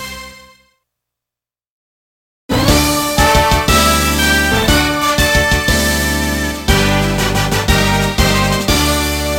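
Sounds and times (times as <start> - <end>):
chapter clear jingle: 2.7 - 9.2.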